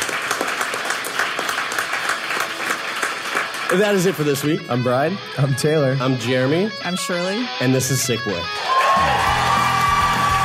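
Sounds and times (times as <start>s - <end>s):
audience applause: 0.0s - 4.4s, 8.6s - 10.4s
speech: 3.7s - 9.4s.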